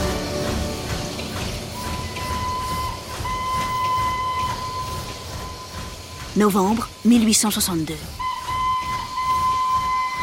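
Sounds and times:
steam train engine rumbling and hissing: 0.0s - 10.2s
steam train whistle: 1.7s - 5.8s, 8.2s - 10.2s
speech: 6.4s - 8.2s.

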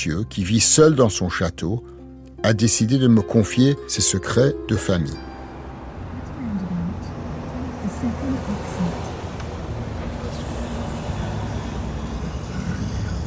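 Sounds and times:
speech: 0.0s - 5.3s
rented car driving on road toward the Czech border: 4.2s - 13.2s.

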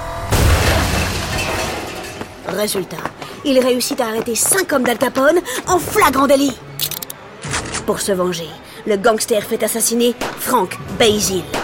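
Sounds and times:
ram truck crashing into a warehouse: 0.2s - 2.4s
splintering and shattering debris: 0.3s - 2.5s
speech: 2.5s - 6.7s, 7.9s - 11.6s.

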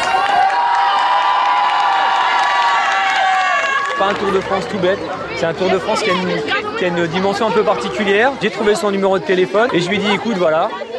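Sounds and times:
class of children cheering a welcome: 0.0s - 5.5s
speech: 4.0s - 10.9s.

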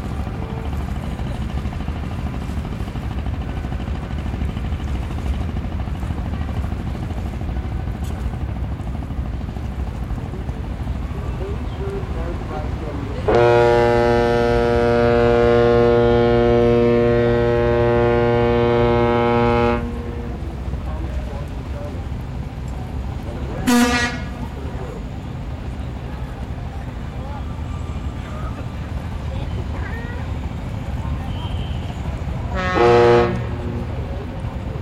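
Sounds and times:
long deep ship horn: 0.0s - 9.0s, 12.4s - 21.3s, 23.5s - 24.8s, 30.3s - 34.8s
river traffic rumble: 0.0s - 34.8s.

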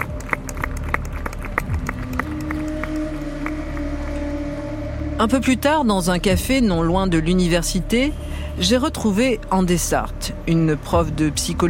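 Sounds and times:
teachers and students applauding at demonstration: 0.0s - 5.1s
speech: 5.2s - 11.6s.

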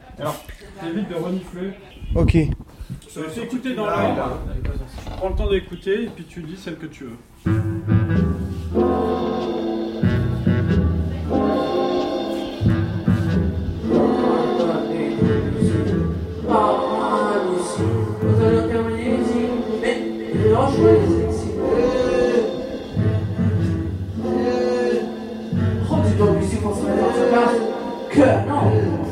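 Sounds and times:
speech: 0.2s - 8.8s
short musical loop with low bass pattern: 7.5s - 29.0s.

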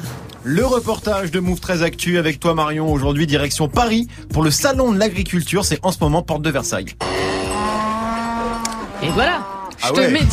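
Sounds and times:
speech: 0.4s - 7.3s, 9.0s - 10.3s
cow mooing: 7.0s - 9.9s.

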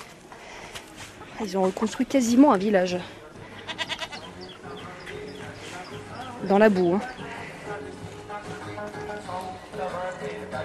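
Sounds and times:
speech: 1.4s - 3.2s, 6.5s - 7.1s
goats bleating in a makeshift rebuilt village in the mud: 3.4s - 6.4s.

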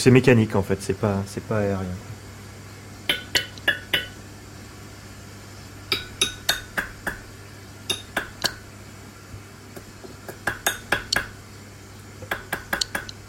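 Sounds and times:
speech: 0.0s - 2.1s
Surinam toad's underwater metallic clicking call: 3.1s - 4.2s, 7.9s - 8.6s, 10.3s - 11.3s, 12.3s - 13.2s.

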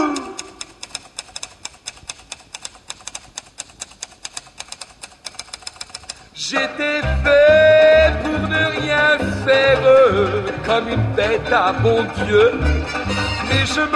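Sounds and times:
typewriter keys clacking: 0.1s - 6.3s
speech: 6.5s - 7.7s, 8.5s - 12.8s, 13.6s - 13.9s.

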